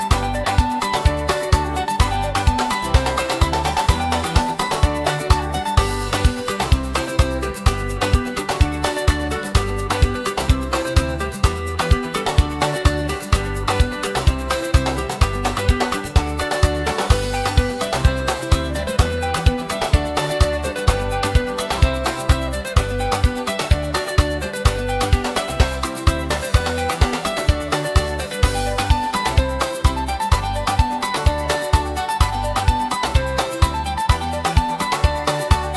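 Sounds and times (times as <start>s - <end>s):
gospel drums: 0.0s - 35.7s.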